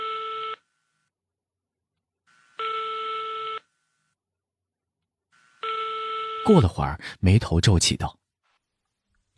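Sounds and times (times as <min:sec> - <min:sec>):
telephone ringback tone of a call to a mobile phone: 0:00.0 - 0:00.6, 0:02.4 - 0:03.7, 0:05.4 - 0:06.6
speech: 0:06.5 - 0:08.2.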